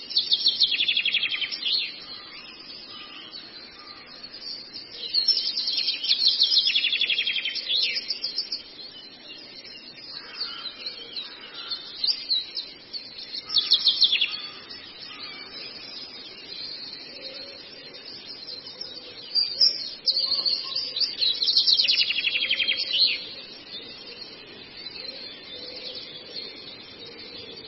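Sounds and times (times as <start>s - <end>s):
Long-tailed shrike twittering song: 0.0s - 27.6s.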